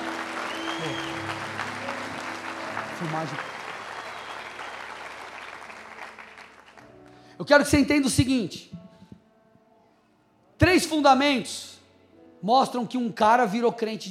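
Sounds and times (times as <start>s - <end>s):
audience applause: 0.0s - 7.0s
speech: 3.0s - 3.6s, 7.4s - 8.8s, 10.8s - 11.7s, 12.4s - 14.0s.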